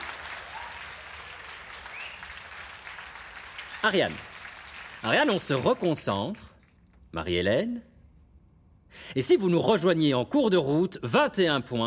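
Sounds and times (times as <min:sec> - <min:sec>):
audience applause: 0:00.0 - 0:05.8
speech: 0:03.8 - 0:04.3, 0:05.0 - 0:06.5, 0:07.1 - 0:07.9, 0:08.9 - 0:11.8.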